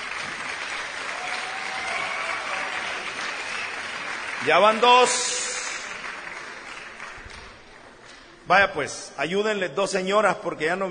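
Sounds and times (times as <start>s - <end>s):
audience applause: 0.0s - 7.8s
speech: 4.4s - 5.4s, 8.5s - 10.9s.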